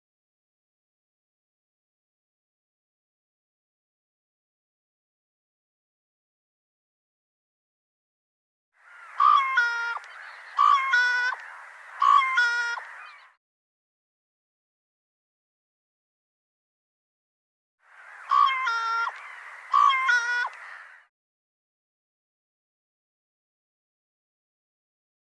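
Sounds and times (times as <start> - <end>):
nasal bird calls: 8.8 - 13.4, 17.9 - 21.1.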